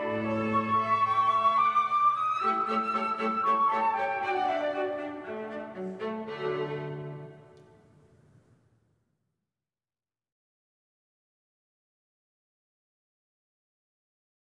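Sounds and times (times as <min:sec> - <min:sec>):
flute quartet: 0:00.0 - 0:07.4.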